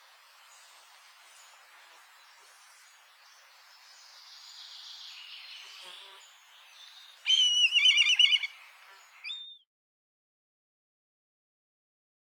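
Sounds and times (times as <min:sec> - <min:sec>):
kite calling: 0:07.3 - 0:08.5.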